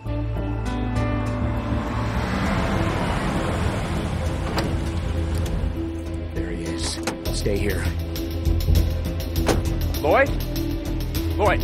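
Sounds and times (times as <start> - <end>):
car engine pulling up at a ferry terminal: 0.0 - 11.4
road and water noise at a ferry terminal: 0.6 - 7.3
speech: 7.4 - 8.0, 10.0 - 10.4, 11.4 - 11.6.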